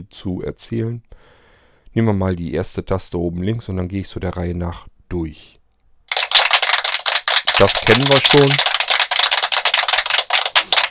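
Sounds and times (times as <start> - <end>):
speech: 0.0 - 5.6, 7.6 - 8.7
applause sound effect: 6.1 - 10.8.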